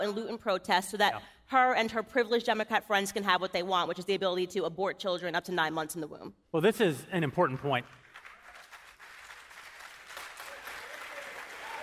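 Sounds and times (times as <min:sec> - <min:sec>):
speech: 0:00.0 - 0:08.0
audience applause: 0:07.8 - 0:11.8.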